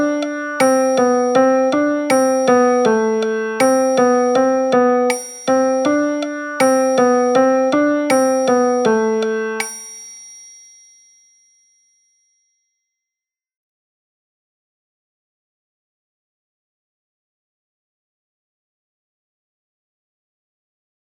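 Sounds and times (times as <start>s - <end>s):
piano music: 0.0s - 10.0s.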